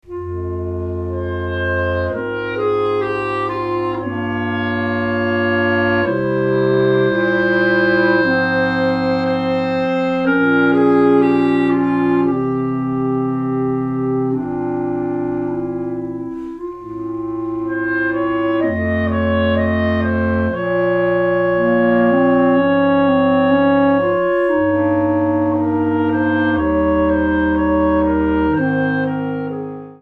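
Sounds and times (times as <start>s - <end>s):
clarinet playing a prelude and fugue: 0.0s - 29.9s.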